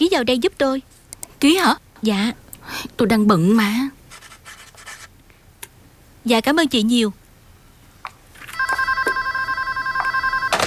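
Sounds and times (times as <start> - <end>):
speech: 0.0 - 4.0, 6.2 - 7.2
telephone ringing with an electronic warbling tone: 8.5 - 10.6.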